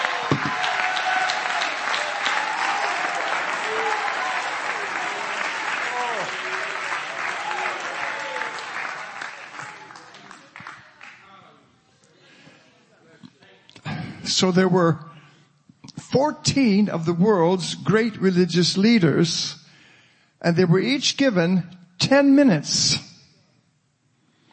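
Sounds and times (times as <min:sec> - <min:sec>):
audience shouting: 0:00.0 - 0:10.2
audience clapping: 0:00.0 - 0:11.4
speech: 0:14.4 - 0:15.0, 0:16.2 - 0:19.6, 0:20.4 - 0:23.0.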